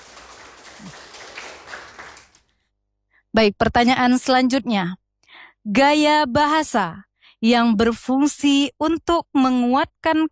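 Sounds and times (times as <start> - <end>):
faint applause for a quiz team in a school quiz contest: 0.0 - 2.4
speech: 3.4 - 5.0, 5.6 - 10.2.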